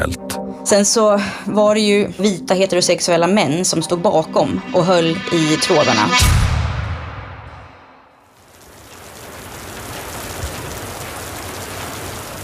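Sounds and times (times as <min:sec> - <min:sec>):
speech: 0:00.0 - 0:06.6
heavy rain pouring down: 0:08.3 - 0:12.4.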